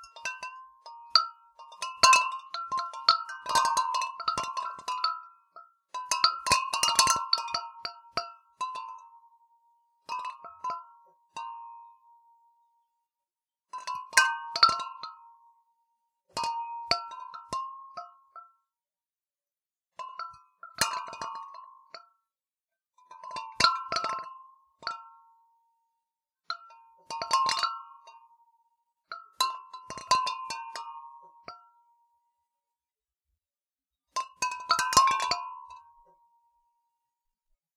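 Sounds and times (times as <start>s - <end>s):
glass clinking in water: 0.0s - 12.1s, 13.7s - 15.4s, 16.3s - 18.6s, 19.9s - 22.2s, 23.0s - 25.6s, 26.4s - 31.8s, 34.1s - 36.5s.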